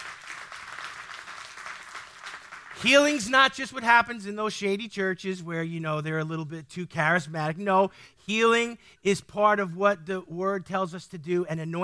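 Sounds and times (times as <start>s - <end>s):
audience clapping hands: 0.0s - 3.1s
speech: 2.8s - 11.8s.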